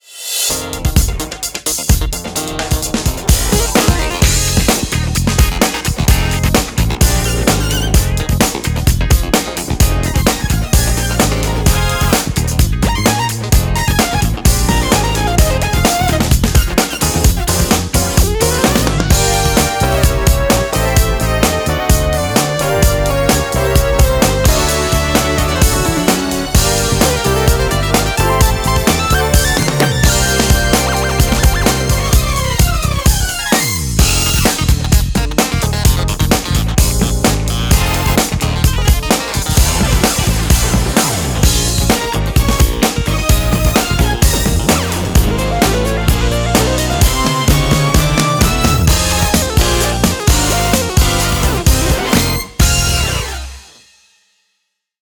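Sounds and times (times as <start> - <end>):
funk music: 0.2 - 53.8.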